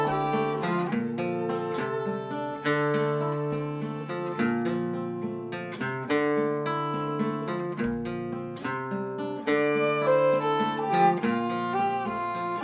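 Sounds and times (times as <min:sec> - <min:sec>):
violin playing an Eastern theme: 0:00.0 - 0:05.2, 0:09.4 - 0:12.6
guitar playing an Eastern theme: 0:00.0 - 0:12.6.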